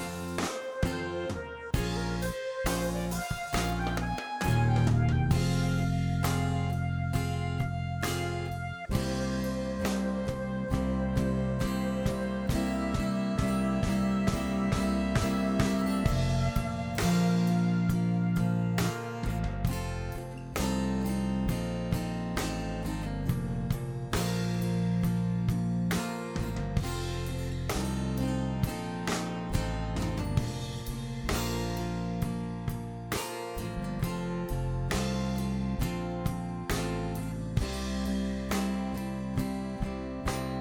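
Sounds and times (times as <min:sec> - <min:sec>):
drum: 0:00.0 - 0:40.5
flute: 0:00.1 - 0:19.4.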